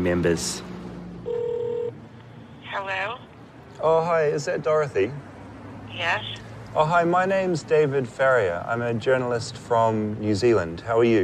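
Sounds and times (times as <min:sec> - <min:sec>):
speech: 0:00.0 - 0:00.7, 0:03.8 - 0:05.3, 0:05.9 - 0:11.2
telephone dialing tone for a phone call: 0:01.3 - 0:02.0.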